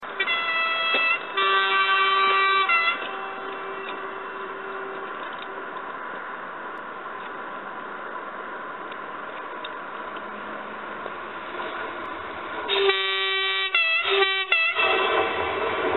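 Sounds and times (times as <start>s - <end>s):
Eurosprinter locomotive horn: 0.0s - 5.8s, 12.7s - 15.8s.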